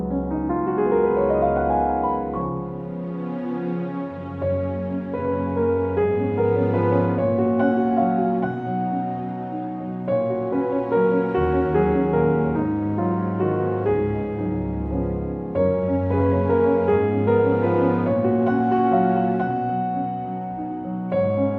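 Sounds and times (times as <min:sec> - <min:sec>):
strings: 0:00.2 - 0:21.5.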